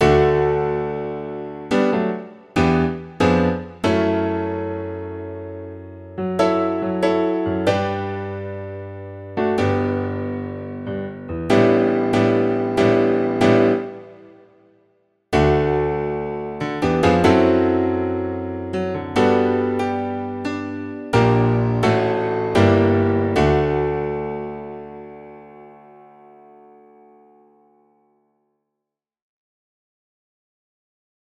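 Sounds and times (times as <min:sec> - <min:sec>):
piano: 0:00.0 - 0:28.5.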